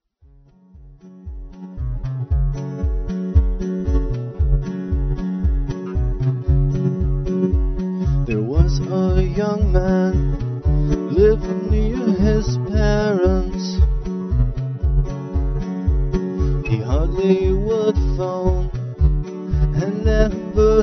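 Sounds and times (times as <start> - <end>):
harmonic tone: 0.5 - 20.8.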